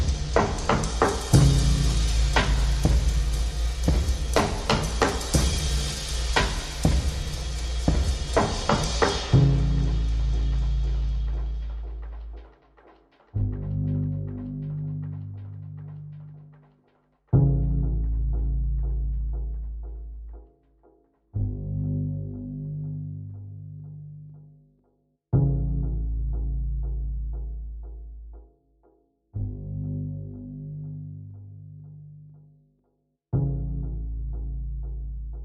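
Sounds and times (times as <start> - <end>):
drums: 0.0 - 20.0
bass: 0.0 - 24.7, 25.3 - 28.7, 29.3 - 32.6, 33.3 - 35.4.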